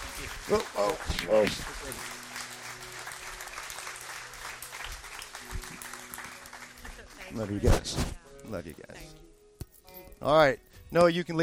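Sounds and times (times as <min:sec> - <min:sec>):
audience applause welcoming guests: 0:00.0 - 0:07.6
speech: 0:00.2 - 0:02.2, 0:07.3 - 0:09.2, 0:10.2 - 0:11.4.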